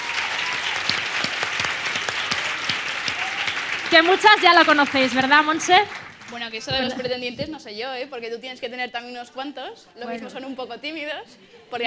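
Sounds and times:
audience applause: 0.0 - 6.6
speech: 3.9 - 11.8.

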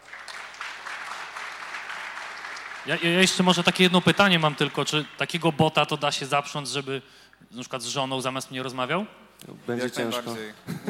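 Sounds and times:
audience applauding: 0.0 - 6.3
speech: 2.8 - 10.8.

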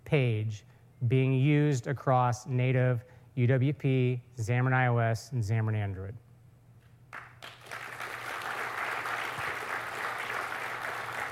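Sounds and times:
speech: 0.1 - 6.2
audience clapping: 7.1 - 11.2.

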